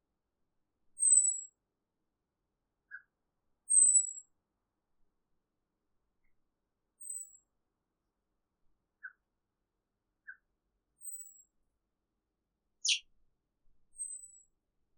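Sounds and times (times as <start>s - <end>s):
exotic cage bird uttering varied high chirps: 1.0s - 1.4s, 3.7s - 4.2s, 12.8s - 13.1s.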